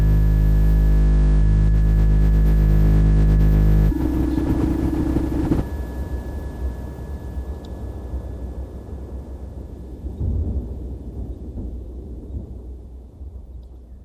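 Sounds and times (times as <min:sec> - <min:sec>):
neofolk drone music: 0:00.0 - 0:10.2.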